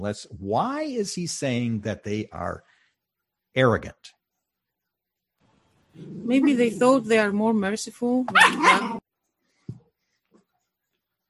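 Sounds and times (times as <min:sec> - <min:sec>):
speech: 0:00.0 - 0:02.7, 0:03.6 - 0:04.2, 0:06.0 - 0:09.0
dog barking: 0:08.3 - 0:09.0.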